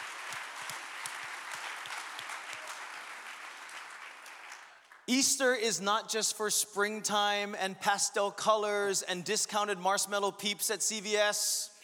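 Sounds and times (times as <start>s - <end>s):
audience applause: 0.0s - 5.0s
speech: 5.1s - 11.8s.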